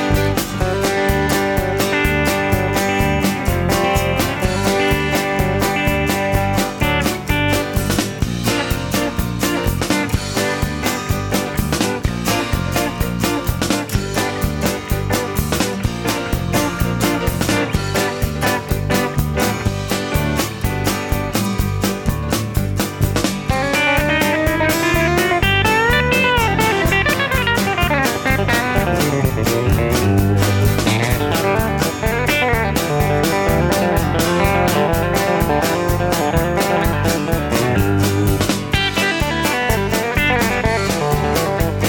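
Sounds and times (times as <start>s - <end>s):
full guitar picking: 0.0s - 41.8s.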